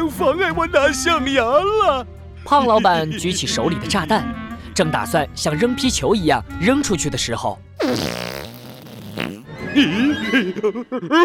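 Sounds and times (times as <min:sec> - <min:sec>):
speech: 0:00.1 - 0:08.6, 0:09.2 - 0:11.2
fart: 0:07.8 - 0:09.5
laughter: 0:09.5 - 0:11.2.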